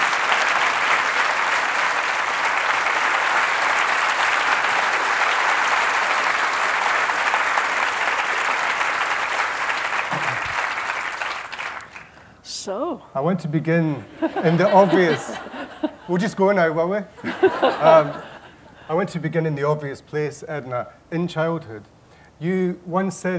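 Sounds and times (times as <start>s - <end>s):
audience applause welcoming the writer Edna O'Brien: 0.0s - 12.2s
laughter: 10.1s - 10.6s, 14.1s - 16.4s, 17.2s - 18.9s
speech: 12.7s - 15.5s, 16.1s - 18.3s, 18.9s - 23.3s.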